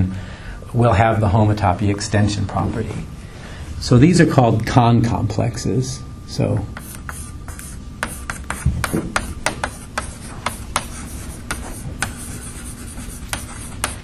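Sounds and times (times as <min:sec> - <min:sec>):
speech: 0:00.7 - 0:03.2, 0:03.8 - 0:06.8
writing a definition on a board: 0:06.8 - 0:14.0.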